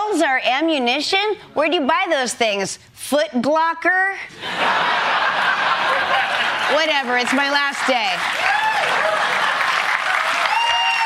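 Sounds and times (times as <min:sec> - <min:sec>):
speech: 0:00.2 - 0:09.1
laughter: 0:04.3 - 0:08.1, 0:08.8 - 0:10.3
audience applause: 0:05.8 - 0:11.0.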